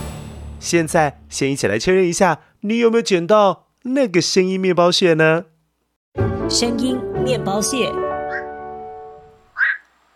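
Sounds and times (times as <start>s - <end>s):
speech: 0.7s - 5.5s, 6.2s - 8.1s
black-crowned night heron calling: 8.3s - 8.5s, 9.5s - 9.9s.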